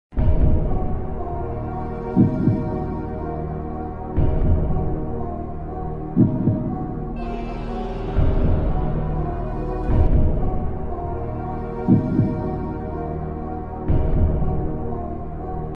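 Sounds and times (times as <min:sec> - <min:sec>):
detective music: 0:00.2 - 0:15.7.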